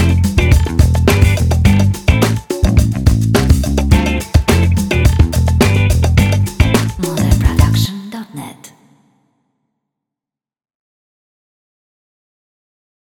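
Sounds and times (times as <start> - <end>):
funk drum beats: 0.0 - 7.9.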